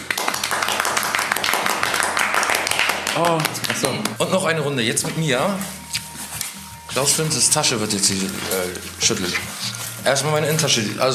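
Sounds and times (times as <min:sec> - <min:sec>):
applause from a small group: 0:00.0 - 0:04.2
speech: 0:03.2 - 0:06.0, 0:07.0 - 0:11.1.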